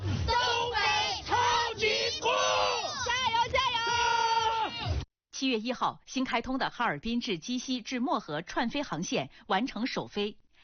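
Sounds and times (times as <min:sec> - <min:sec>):
Jixi and Yanbian football fans chanting and cheering before a match: 0:00.0 - 0:05.0
speech: 0:05.5 - 0:10.4.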